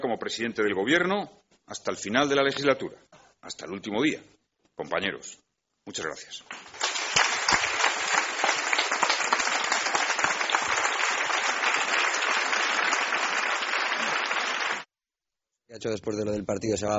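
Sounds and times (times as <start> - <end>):
speech: 0.0 - 6.8, 15.8 - 16.9
audience applause at political speech: 6.5 - 14.9.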